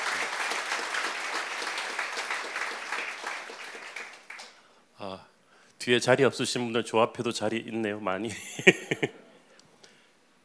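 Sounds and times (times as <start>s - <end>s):
audience applauding: 0.0s - 4.6s
speech: 5.0s - 9.2s.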